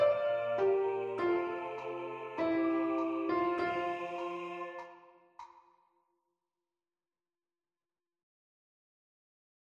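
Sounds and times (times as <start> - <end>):
piano: 0.0 - 5.1.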